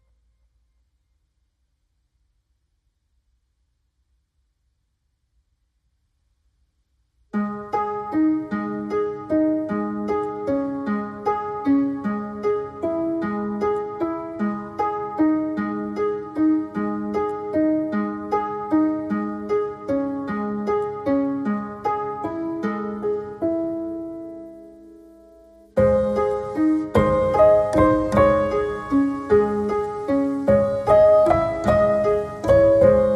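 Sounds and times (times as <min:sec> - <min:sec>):
piano: 0:07.2 - 0:33.1.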